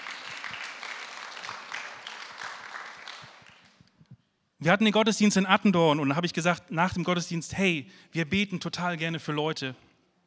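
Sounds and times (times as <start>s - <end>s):
audience clapping: 0.0s - 3.9s
speech: 4.6s - 9.9s.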